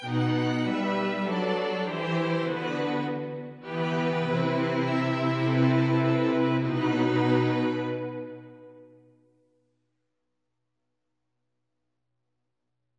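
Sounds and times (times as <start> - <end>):
instrumental music: 0.0 - 9.1.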